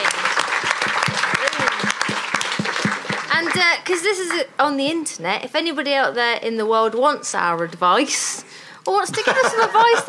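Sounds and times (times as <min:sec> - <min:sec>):
audience applause: 0:00.0 - 0:03.8
speech: 0:03.5 - 0:10.0
laughter: 0:09.0 - 0:10.0.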